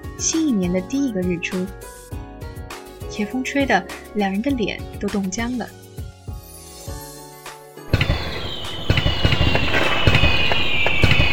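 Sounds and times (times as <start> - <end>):
speech: 0.2 - 2.0, 3.2 - 5.8
faint high whistle: 7.9 - 11.3
fireworks popping and crackling: 7.9 - 11.3.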